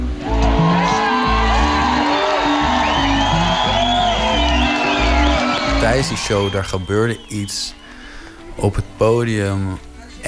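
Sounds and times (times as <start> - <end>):
tent full of people cheering: 0.0 - 8.1
speech: 6.0 - 7.8, 8.6 - 10.2.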